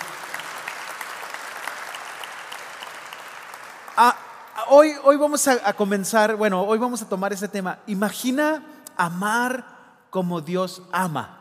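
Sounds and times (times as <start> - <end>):
audience applause: 0.0 - 4.5
speech: 4.0 - 11.3.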